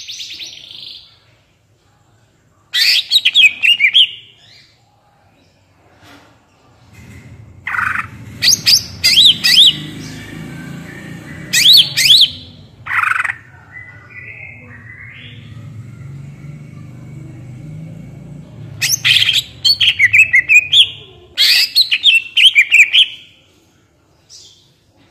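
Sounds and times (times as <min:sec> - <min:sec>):
greater green leafbird song: 0:02.8 - 0:04.8, 0:07.7 - 0:17.4, 0:18.7 - 0:23.4
low hum: 0:06.8 - 0:21.4.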